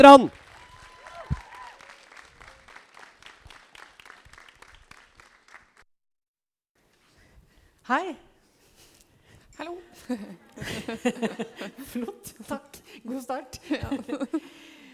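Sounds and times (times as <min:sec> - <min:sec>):
speech: 0:00.0 - 0:00.4, 0:07.9 - 0:08.2, 0:09.6 - 0:14.8
audience applause: 0:00.1 - 0:05.8
laughter: 0:10.1 - 0:12.2.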